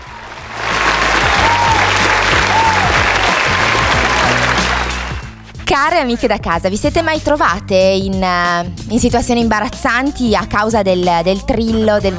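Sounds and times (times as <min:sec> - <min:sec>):
crowd applause: 0:00.0 - 0:05.4
speech: 0:05.8 - 0:12.1.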